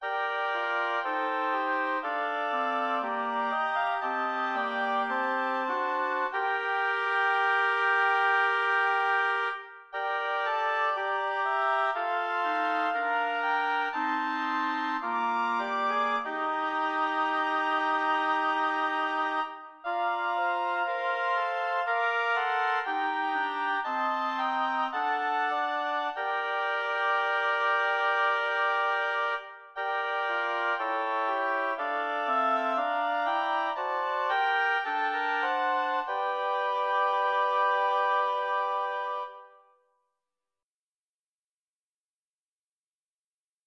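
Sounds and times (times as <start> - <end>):
lyrical oboe quartet: 0.0 - 39.8.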